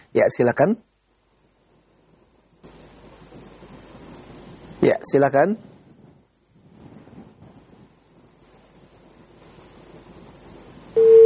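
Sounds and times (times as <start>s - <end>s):
faint phone line hiss: 0.0s - 11.2s
speech: 0.1s - 0.9s, 4.8s - 5.7s
phone line disconnected tone: 11.0s - 11.2s.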